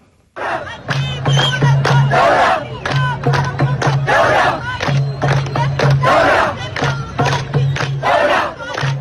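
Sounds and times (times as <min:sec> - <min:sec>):
large protest crowd in Sudan chanting slogans: 0:00.4 - 0:08.9.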